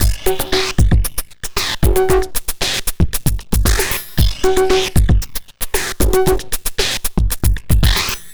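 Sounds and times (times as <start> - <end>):
strange drums: 0.0 - 8.3.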